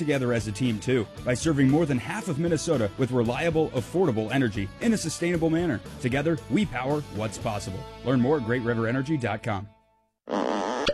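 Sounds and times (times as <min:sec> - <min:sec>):
speech: 0:00.0 - 0:10.5
comic fart-like blare: 0:10.3 - 0:10.9.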